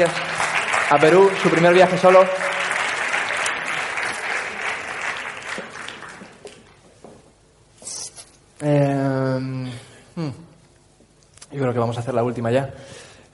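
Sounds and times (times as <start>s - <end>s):
speech: 0.0s - 0.3s, 0.9s - 2.5s, 8.6s - 9.6s, 11.6s - 13.3s
audience applause: 0.0s - 6.8s.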